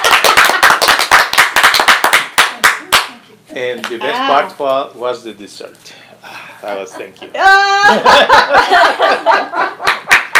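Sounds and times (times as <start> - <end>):
group clapping hands: 0.0 - 3.2, 9.8 - 10.3
speech: 3.6 - 6.0, 6.6 - 9.9
laughter: 6.8 - 10.1.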